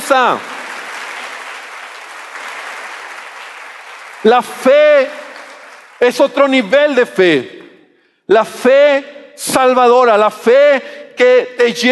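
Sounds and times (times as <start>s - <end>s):
audience applauding: 0.0s - 6.5s
speech: 0.1s - 0.5s, 4.2s - 5.2s, 6.0s - 7.6s, 8.3s - 11.8s.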